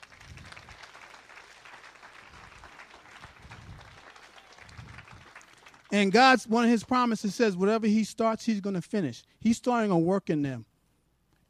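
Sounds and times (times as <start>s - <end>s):
audience applauding: 0.0s - 7.0s
speech: 5.9s - 10.7s.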